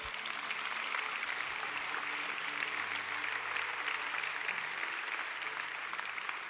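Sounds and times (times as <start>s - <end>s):
audience applause: 0.0s - 6.4s.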